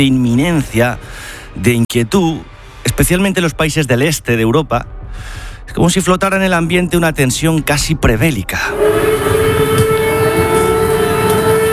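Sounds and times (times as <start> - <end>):
speech: 0.0 - 9.3
air raid siren: 8.7 - 11.7.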